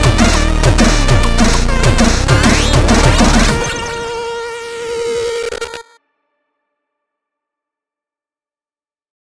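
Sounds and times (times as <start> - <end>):
chiptune remix instrumental: 0.0 - 6.0.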